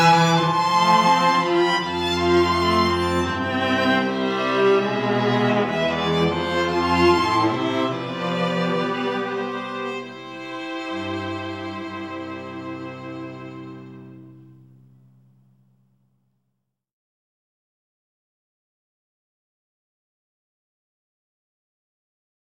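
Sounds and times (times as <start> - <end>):
string quartet playing: 0.0 - 14.6.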